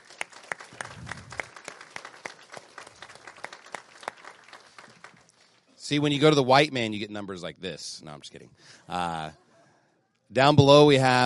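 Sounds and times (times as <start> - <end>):
audience applause: 0.0 - 5.3
speech: 5.9 - 9.4, 10.3 - 11.2.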